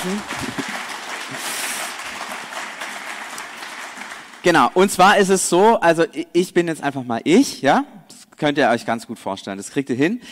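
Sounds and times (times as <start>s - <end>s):
speech: 0.0s - 0.7s, 4.4s - 10.3s
audience applause: 0.0s - 4.8s.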